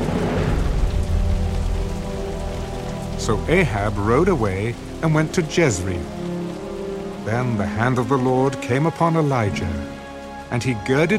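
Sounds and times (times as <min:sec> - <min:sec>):
thunder: 0:00.0 - 0:02.1
heavy rain: 0:00.0 - 0:11.1
speech: 0:03.2 - 0:06.2, 0:07.2 - 0:09.9, 0:10.5 - 0:11.1.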